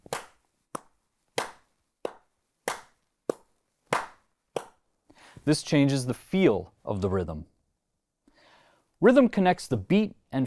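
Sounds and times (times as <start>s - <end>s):
hand claps accenting beats one and three: 0.0s - 4.8s
speech: 5.4s - 7.5s, 9.0s - 10.4s.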